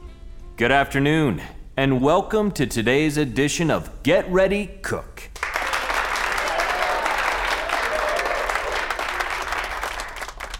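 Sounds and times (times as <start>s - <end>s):
speech: 0.6s - 5.2s
studio audience applause: 5.4s - 10.5s.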